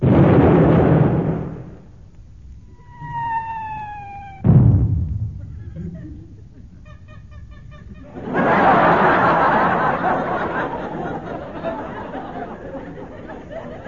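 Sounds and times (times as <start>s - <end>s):
ship's gun firing: 0.0s - 1.9s, 2.7s - 5.7s
steady high whistling tone: 2.5s - 4.5s
laughter: 5.4s - 13.8s.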